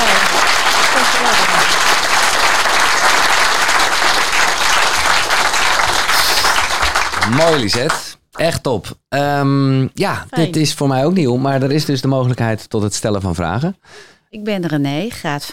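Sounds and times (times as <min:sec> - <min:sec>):
audience applause: 0:00.0 - 0:08.5
speech: 0:07.4 - 0:15.5.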